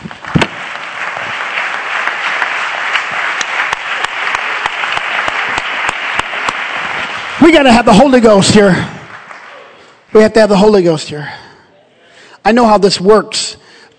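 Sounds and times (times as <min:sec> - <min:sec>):
audience clapping in rhythm: 0:00.0 - 0:10.7
speech: 0:07.4 - 0:09.0, 0:10.1 - 0:11.4, 0:12.4 - 0:13.6.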